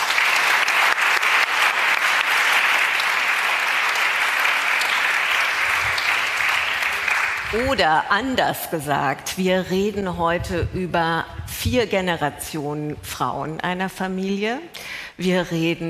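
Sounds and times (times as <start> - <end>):
audience applause: 0.0 - 7.9
speech: 7.5 - 15.8.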